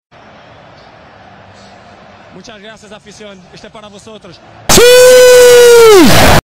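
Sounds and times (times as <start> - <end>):
person shouting: 4.7 - 6.1.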